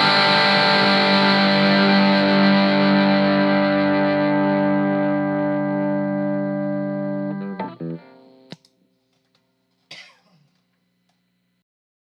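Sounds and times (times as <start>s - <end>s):
boosted Tele electric guitar with effects: 0.0s - 8.6s.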